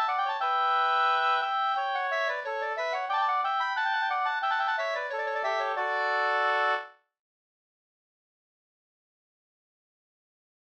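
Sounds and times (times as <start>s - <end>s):
folk walking tune: 0.0s - 6.9s.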